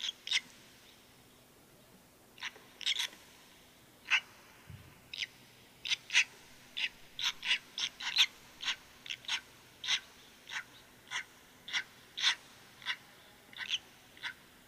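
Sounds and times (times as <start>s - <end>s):
red-rumped swallow chirping: 0.0s - 1.0s, 2.4s - 3.2s, 4.0s - 4.3s, 5.1s - 14.5s.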